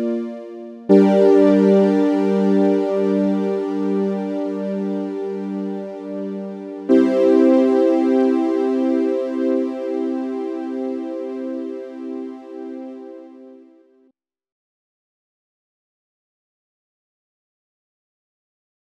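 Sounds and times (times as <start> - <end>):
short synthesizer piece: 0.0 - 13.5.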